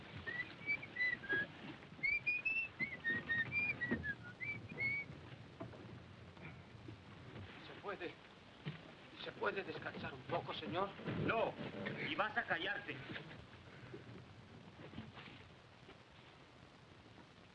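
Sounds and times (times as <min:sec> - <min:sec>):
person whistling a tune to call the wind: 0:00.3 - 0:05.1
speech: 0:09.6 - 0:13.4.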